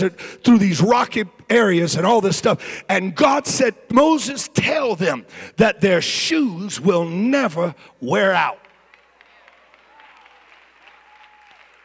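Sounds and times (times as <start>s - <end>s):
speech: 0.0s - 8.6s
audience clapping: 8.2s - 11.8s.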